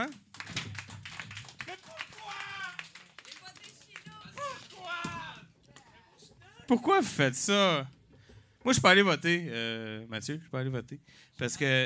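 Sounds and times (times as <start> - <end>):
audience applause: 0.0 - 5.4
speech: 6.7 - 8.0, 8.6 - 11.8.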